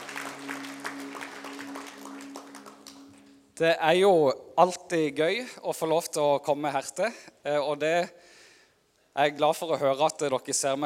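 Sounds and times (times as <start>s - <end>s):
audience applauding: 0.0s - 3.5s
speech: 3.6s - 8.3s, 9.2s - 10.8s.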